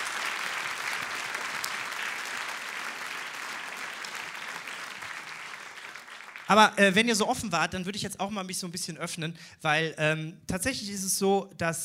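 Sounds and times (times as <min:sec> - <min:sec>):
audience applause: 0:00.0 - 0:06.6
speech: 0:06.5 - 0:11.8.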